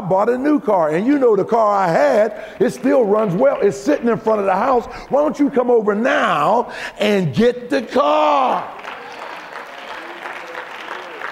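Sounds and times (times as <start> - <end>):
speech: 0.1 - 8.8
audience applause: 1.8 - 5.4, 8.3 - 11.3.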